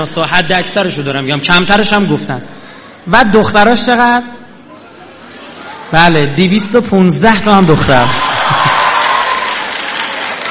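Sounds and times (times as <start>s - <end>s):
speech: 0.0s - 4.4s, 5.9s - 8.3s
applause in response to a lecturer's remark: 8.1s - 10.4s.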